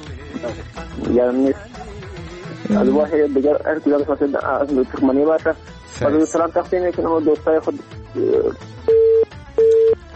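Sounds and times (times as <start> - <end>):
speech: 0.4 - 1.7, 2.7 - 8.7
telephone tone after a dropped phone-in call: 8.2 - 10.0.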